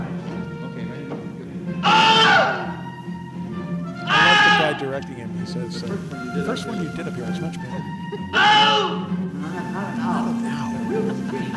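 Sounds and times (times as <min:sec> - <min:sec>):
man screaming as alligator bites: 0:01.8 - 0:02.8, 0:04.1 - 0:04.8, 0:08.3 - 0:09.0
laughter: 0:04.1 - 0:11.5
speech: 0:04.8 - 0:11.5.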